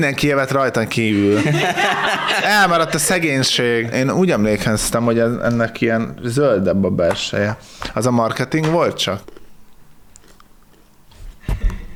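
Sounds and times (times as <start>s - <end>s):
speech: 0.0s - 9.4s
laughter: 1.0s - 3.8s
biting into crunchy Dubai-style chocolate bar with pistachio filling: 9.2s - 11.0s.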